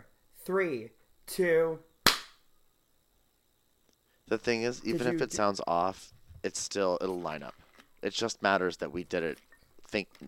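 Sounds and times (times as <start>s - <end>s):
speech: 0.5s - 1.9s, 4.3s - 10.2s
single hand clap: 2.0s - 2.4s.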